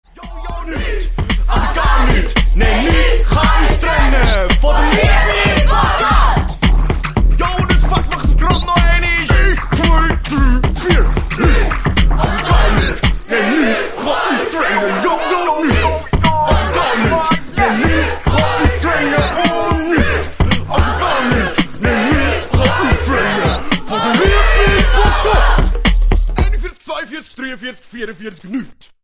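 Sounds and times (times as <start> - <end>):
rap music: 0.0 - 28.4.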